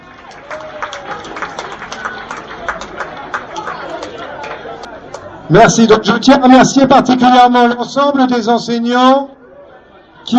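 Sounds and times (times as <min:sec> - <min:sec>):
audience applauding: 0:00.0 - 0:05.3
speech: 0:05.5 - 0:09.4.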